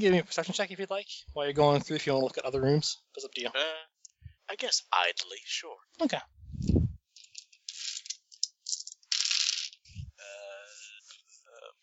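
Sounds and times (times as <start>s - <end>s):
speech: 0.0s - 3.9s, 4.5s - 6.8s
dice rolling: 7.2s - 9.9s.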